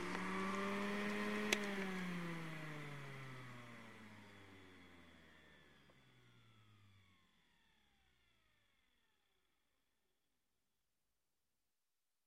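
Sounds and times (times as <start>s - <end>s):
blender running: 0.0s - 7.4s.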